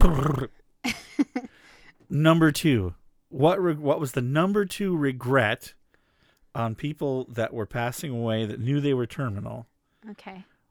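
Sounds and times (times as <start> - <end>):
dog growling: 0.0 - 0.5
speech: 0.0 - 0.6, 2.1 - 5.8, 6.6 - 10.5.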